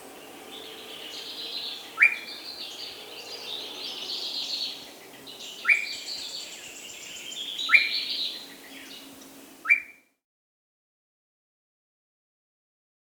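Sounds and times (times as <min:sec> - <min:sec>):
Short-Tailed Antthrush Chamaeza campanisona calling in the Andes: 0:00.9 - 0:02.9, 0:04.2 - 0:10.0.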